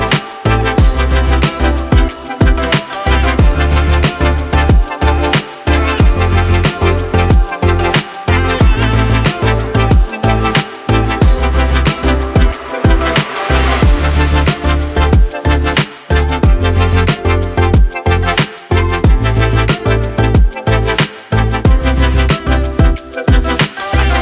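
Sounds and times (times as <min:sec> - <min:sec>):
looping background music: 0:00.0 - 0:24.2.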